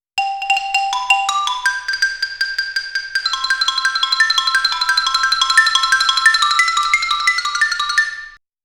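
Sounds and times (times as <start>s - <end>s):
xylophone: 0.2s - 8.4s.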